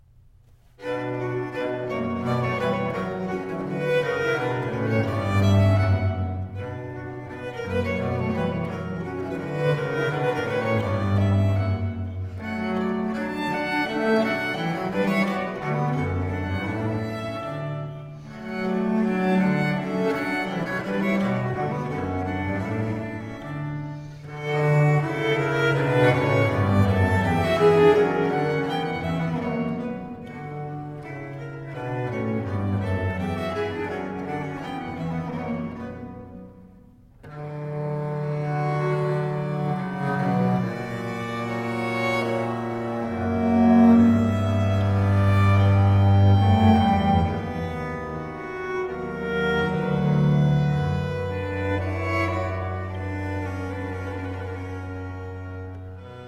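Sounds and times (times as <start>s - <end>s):
viols playing a jig in C minor: 0.5s - 56.2s.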